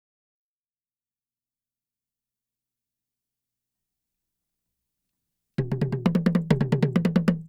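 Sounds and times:
Asian toy djembe and toms: 5.6s - 7.4s.

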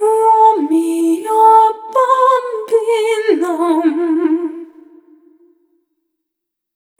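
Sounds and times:
vocal samples: 0.0s - 5.6s.

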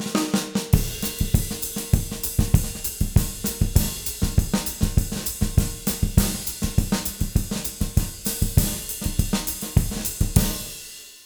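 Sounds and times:
200 BPM samba Latin jazz drum loop: 0.0s - 10.9s.

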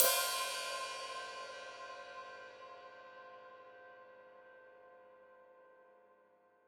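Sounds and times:
open hi-hat: 0.0s - 1.5s.

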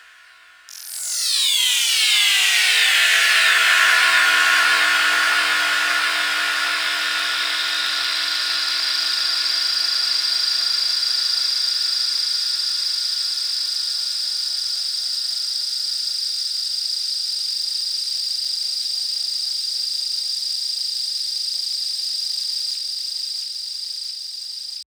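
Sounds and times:
atmosphere ambience: 0.0s - 15.2s.

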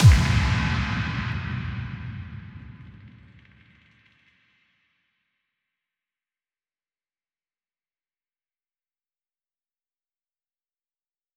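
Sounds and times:
breakbeat at tempo 140: 0.0s - 3.2s
boom effect: 0.0s - 3.7s.

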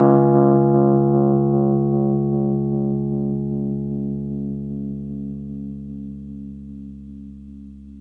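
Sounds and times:
Rhodes 73 electric piano playing slowly in C sharp: 0.0s - 8.0s.

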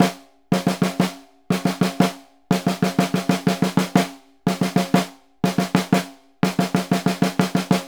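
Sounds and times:
Synclavier percussion snare drum pattern: 0.0s - 7.8s.

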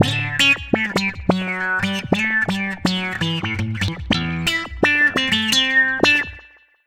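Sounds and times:
wah-wah guitar: 0.0s - 6.6s.

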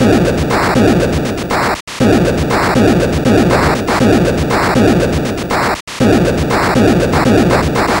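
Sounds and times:
Atari 2600 noise drums: 0.0s - 7.9s.

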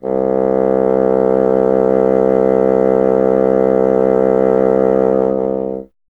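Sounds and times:
bassoon playing C: 0.0s - 6.0s.

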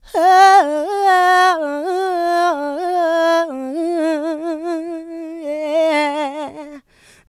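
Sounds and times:
vocals: 0.0s - 7.3s.

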